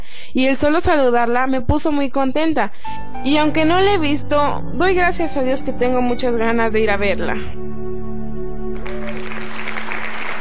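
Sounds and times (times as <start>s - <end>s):
speech: 0.4s - 7.8s
classroom applauding: 8.8s - 10.3s.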